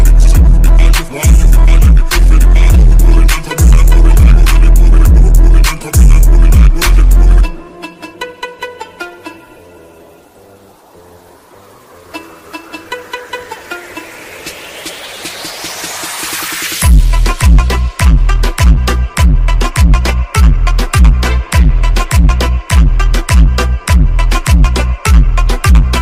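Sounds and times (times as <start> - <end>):
bass: 0.0 - 7.6, 15.6 - 25.9.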